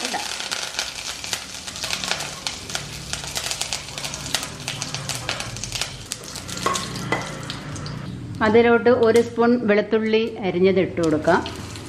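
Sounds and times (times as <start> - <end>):
mustard seeds, dried chillies and curry leaves frying in hot oil: 0.0 - 8.1, 11.1 - 11.8
stirring scraping: 1.7 - 7.7
speech: 8.4 - 11.6.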